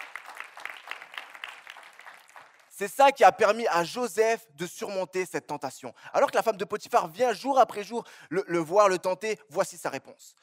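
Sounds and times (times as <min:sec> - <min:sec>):
congregation clapping along during a church sermon: 0:00.0 - 0:03.7
speech: 0:02.8 - 0:10.4.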